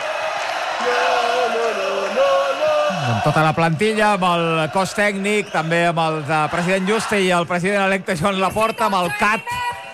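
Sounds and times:
fans chanting champions: 0:00.1 - 0:03.4
speech: 0:00.8 - 0:01.2, 0:03.1 - 0:09.6.

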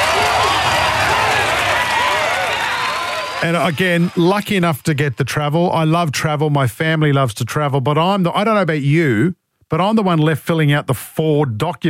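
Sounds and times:
crowd applause: 0:00.0 - 0:05.2
cheering voices: 0:00.0 - 0:05.3
speech: 0:03.4 - 0:11.8.

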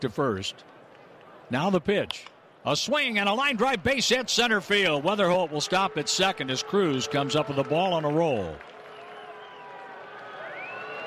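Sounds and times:
speech: 0:00.0 - 0:00.8, 0:01.5 - 0:08.7
baseball fans booing a relief pitcher: 0:03.4 - 0:11.0.

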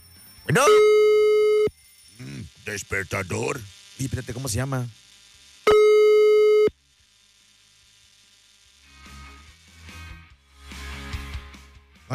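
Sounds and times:
speech: 0:00.5 - 0:00.9, 0:02.6 - 0:05.0
telephone busy signal: 0:00.5 - 0:01.7, 0:05.7 - 0:06.7.

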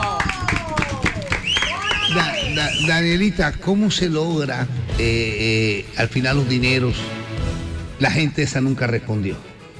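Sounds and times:
hands clapping: 0:00.0 - 0:03.0
speech: 0:02.1 - 0:07.2, 0:08.0 - 0:09.5.

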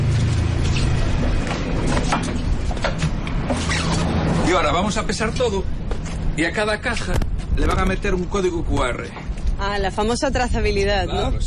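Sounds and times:
fishing boat engine rumbling: 0:00.0 - 0:11.4
speech: 0:04.5 - 0:05.8, 0:06.4 - 0:11.4.

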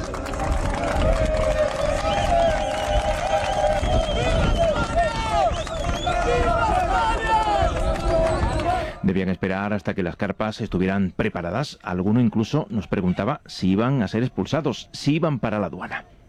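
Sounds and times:
crowd shouting at the gates: 0:00.1 - 0:09.0
speech: 0:09.2 - 0:16.2.

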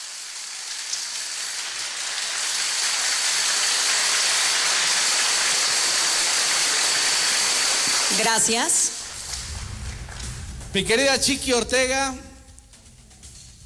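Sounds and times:
audience applause: 0:00.0 - 0:10.7
speech: 0:08.2 - 0:09.0, 0:10.8 - 0:12.2.

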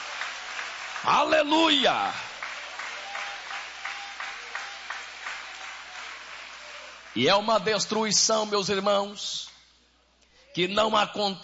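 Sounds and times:
audience applause: 0:00.0 - 0:07.3
speech: 0:01.0 - 0:02.2, 0:07.2 - 0:09.5, 0:10.6 - 0:11.4.

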